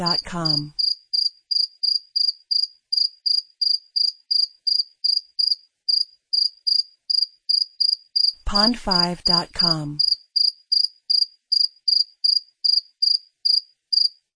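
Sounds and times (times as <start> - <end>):
speech: 0.0 - 0.8, 8.5 - 10.0
cricket chirping: 0.8 - 8.4, 10.0 - 14.2.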